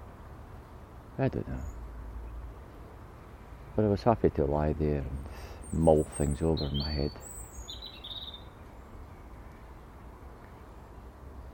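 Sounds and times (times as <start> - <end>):
low rumbling noise: 0.0 - 11.5
speech: 1.2 - 1.8, 3.8 - 7.3
blackbird calling: 5.1 - 9.4.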